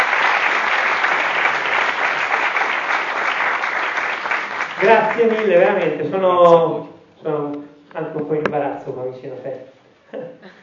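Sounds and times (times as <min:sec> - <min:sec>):
audience applause: 0:00.0 - 0:06.0
speech: 0:04.8 - 0:10.6.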